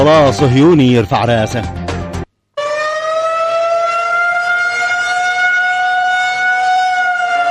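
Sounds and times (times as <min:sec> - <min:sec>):
speech: 0:00.0 - 0:01.8
air raid warning siren: 0:02.6 - 0:07.4.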